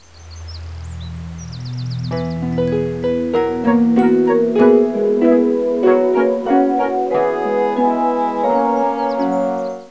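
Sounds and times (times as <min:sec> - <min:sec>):
tune: 0:01.1 - 0:09.8.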